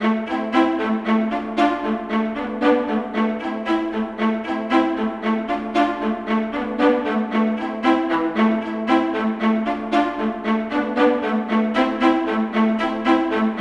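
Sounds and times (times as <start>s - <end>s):
viola: 0.0s - 13.6s.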